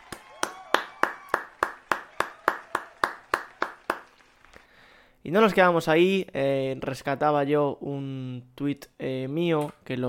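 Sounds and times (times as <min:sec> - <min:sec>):
applause sound effect: 0:00.0 - 0:05.0
speech: 0:05.2 - 0:10.0.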